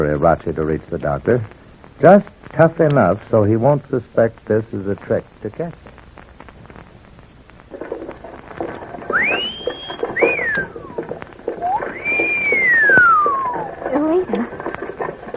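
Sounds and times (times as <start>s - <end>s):
speech: 0.0s - 5.9s
noise: 0.0s - 15.3s
soldiers whistling at passersby: 9.0s - 14.0s.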